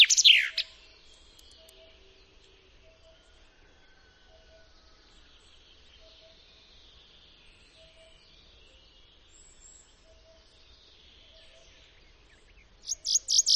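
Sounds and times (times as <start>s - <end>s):
Common chaffinch singing: 0.0s - 2.0s, 12.3s - 13.5s.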